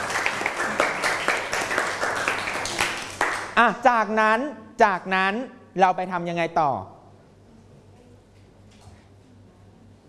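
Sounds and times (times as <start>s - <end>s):
class clapping for two students: 0.0s - 3.6s
speech: 3.6s - 7.0s.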